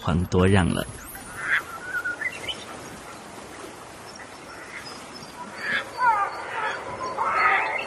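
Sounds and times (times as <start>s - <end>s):
speech: 0.0s - 1.1s
hiss: 0.0s - 6.6s
black-faced spoonbill grunting calls: 1.2s - 3.3s, 4.1s - 7.8s.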